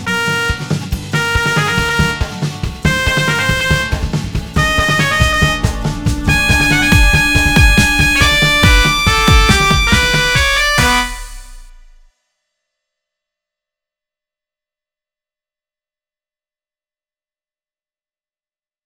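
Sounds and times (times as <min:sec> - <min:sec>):
electronic dance music: 0:00.1 - 0:12.0.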